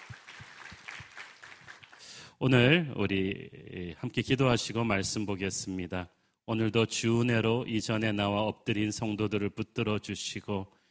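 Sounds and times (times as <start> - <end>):
audience applause: 0.0 - 2.2
speech: 2.4 - 10.8.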